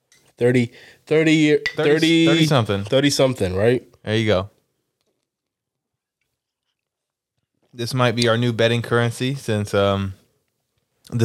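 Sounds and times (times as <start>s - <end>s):
speech: 0.4s - 4.6s, 7.8s - 10.2s, 11.1s - 11.2s
glass drink containers clinking in a toast: 1.6s - 2.6s
people making voiced tonal sounds: 1.8s - 2.8s.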